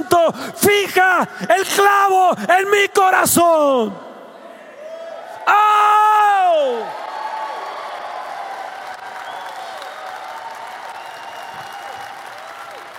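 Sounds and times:
speech: 0:00.3 - 0:04.1, 0:05.5 - 0:07.0
faint voices and cheers: 0:04.6 - 0:12.9
crowd applause: 0:06.7 - 0:12.9.

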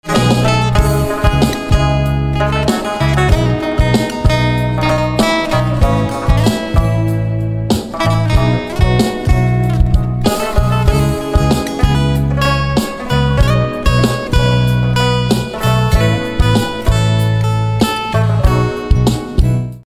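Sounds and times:
guitar instrumental ringtone: 0:00.0 - 0:19.8.

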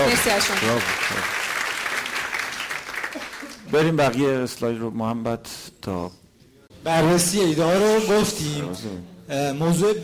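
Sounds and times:
audience applause: 0:00.0 - 0:03.8
speech: 0:00.1 - 0:01.4, 0:03.7 - 0:06.2, 0:06.8 - 0:10.0.

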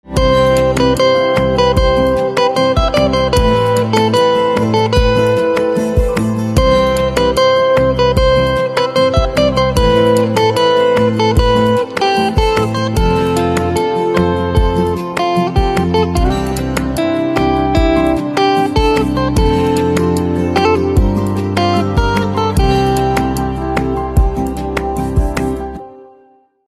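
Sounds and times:
guitar ringtone: 0:00.1 - 0:26.3.

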